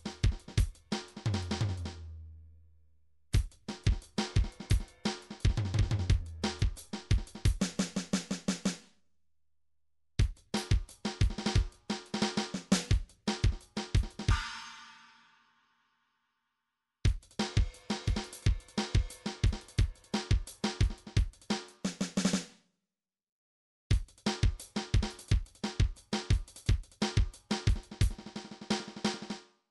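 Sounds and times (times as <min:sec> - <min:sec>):
MIDI drum pattern: 0:00.0 - 0:02.3, 0:03.3 - 0:08.8, 0:10.2 - 0:14.6, 0:17.1 - 0:22.4, 0:23.9 - 0:29.4.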